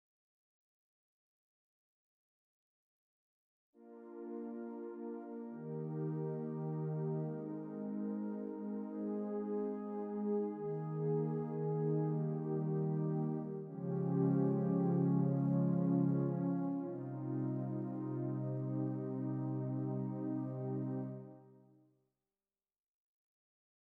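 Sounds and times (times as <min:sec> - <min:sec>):
Roland RD 800 pad: 0:04.0 - 0:21.4.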